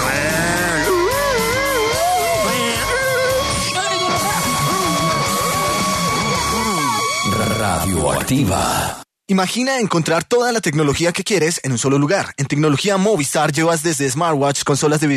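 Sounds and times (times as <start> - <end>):
steady high tone: 0.0 - 8.2
voices imitating a police patrol car siren: 0.1 - 7.6
speech: 8.3 - 15.1.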